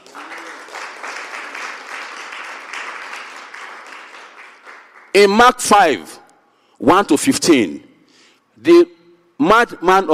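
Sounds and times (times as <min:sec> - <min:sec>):
crowd clapping: 0:00.0 - 0:05.4
speech: 0:05.2 - 0:06.2, 0:06.8 - 0:07.9, 0:08.6 - 0:10.1.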